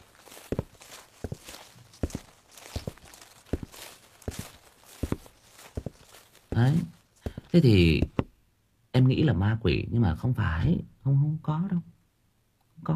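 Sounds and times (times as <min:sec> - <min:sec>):
footsteps of shoes walking: 0:00.0 - 0:08.4
faint hiss: 0:00.0 - 0:12.9
speech: 0:06.6 - 0:07.0, 0:07.6 - 0:08.1, 0:09.3 - 0:11.9.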